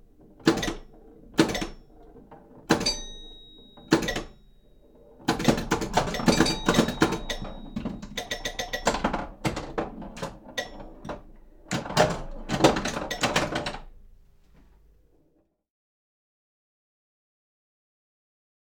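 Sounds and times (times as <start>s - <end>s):
mechanical pinball machine: 0.0s - 14.2s.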